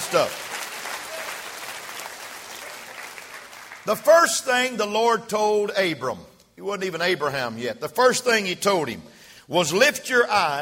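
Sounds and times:
audience clapping hands: 0:00.0 - 0:04.0
speech: 0:00.1 - 0:00.6, 0:03.9 - 0:10.6.

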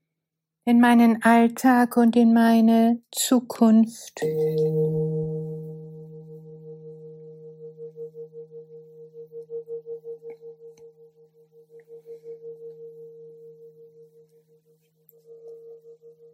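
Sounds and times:
speech: 0:00.7 - 0:05.1
gong strike: 0:04.2 - 0:10.9.

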